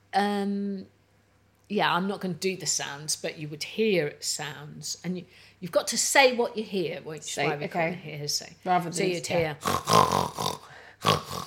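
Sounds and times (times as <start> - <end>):
speech: 0.1 - 1.0, 1.7 - 10.4
pig oinking: 9.6 - 11.4.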